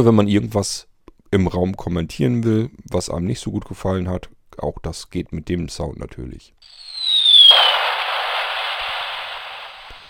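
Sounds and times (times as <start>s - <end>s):
speech: 0.0s - 6.8s
firework rocket sound effect: 6.7s - 10.0s.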